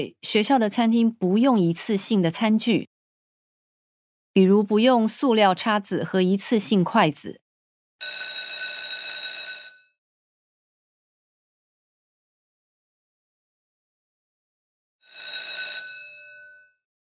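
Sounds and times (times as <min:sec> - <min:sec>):
speech: 0:00.0 - 0:02.9, 0:04.4 - 0:07.4
school bell ringing: 0:08.0 - 0:09.8, 0:15.0 - 0:16.6.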